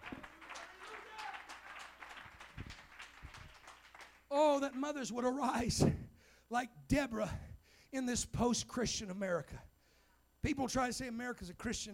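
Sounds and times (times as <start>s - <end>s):
audience clapping hands: 0.0s - 5.1s
speech: 4.6s - 9.7s, 10.4s - 11.9s.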